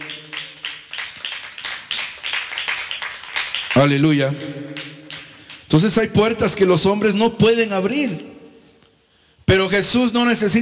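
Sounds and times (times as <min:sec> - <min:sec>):
audience clapping hands in a steady rhythmic beat: 0:00.0 - 0:06.6
speech: 0:03.8 - 0:04.7, 0:05.7 - 0:08.3, 0:09.8 - 0:10.6.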